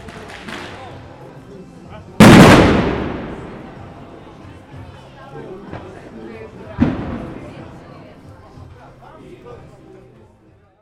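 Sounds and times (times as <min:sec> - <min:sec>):
firecrackers banging: 0:00.0 - 0:00.9, 0:02.2 - 0:04.3, 0:06.8 - 0:07.8.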